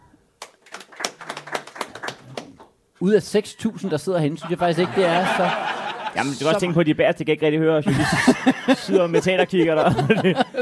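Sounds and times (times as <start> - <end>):
scattered sparse clapping from audience: 0.4 - 2.7
speech: 3.0 - 10.6
laughter: 3.5 - 6.8, 7.9 - 10.6.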